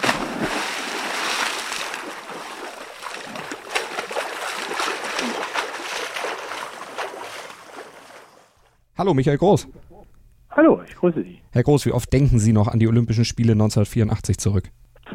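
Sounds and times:
water splash sound effect: 0.0s - 8.8s
speech: 9.0s - 9.8s, 10.6s - 15.1s.

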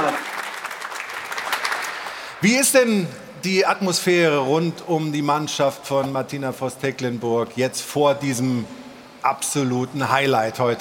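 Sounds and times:
warm applause from live audience: 0.0s - 2.4s
speech: 2.4s - 10.8s.

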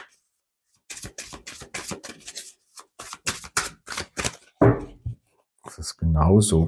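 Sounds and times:
tarot cards being shuffled and drawn: 0.8s - 4.6s
speech: 6.2s - 6.6s.

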